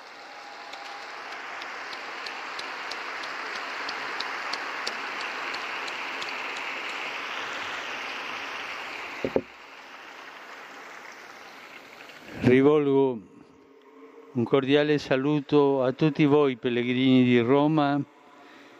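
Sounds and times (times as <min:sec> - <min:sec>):
crowd applause: 0:00.0 - 0:08.5
speech: 0:12.5 - 0:13.3, 0:14.4 - 0:18.1.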